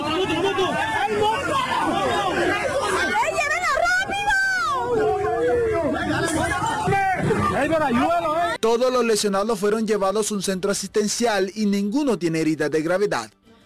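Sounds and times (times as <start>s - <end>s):
crowd shouting and yelling during a street fight: 0.0s - 8.6s
speech: 7.6s - 13.4s.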